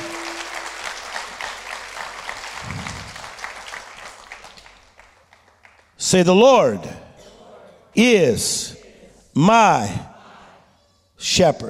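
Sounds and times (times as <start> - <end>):
crowd clapping: 0.0 - 6.0
speech: 6.1 - 7.0, 8.0 - 8.8, 9.4 - 10.1, 11.2 - 11.6.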